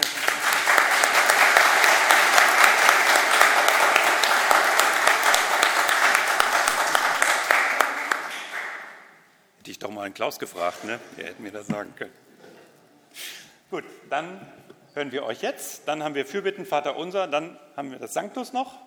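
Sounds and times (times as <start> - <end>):
audience applause: 0.0 - 9.1
speech: 10.2 - 12.3, 13.7 - 18.8.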